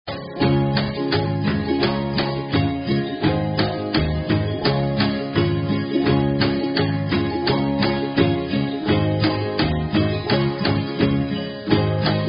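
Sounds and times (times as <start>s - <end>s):
Philippine folk song karaoke: 0.1s - 12.2s.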